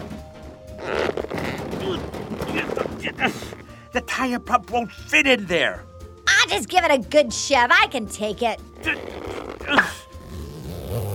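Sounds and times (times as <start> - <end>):
stuck zipper being pulled: 0.7 - 2.9, 8.8 - 11.1
speech: 4.2 - 5.9, 6.5 - 10.0.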